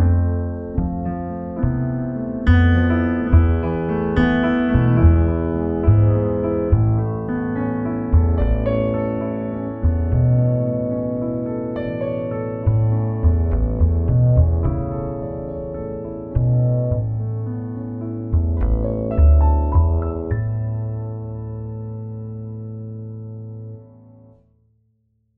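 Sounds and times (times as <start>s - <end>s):
contrabass: 0.0s - 22.3s.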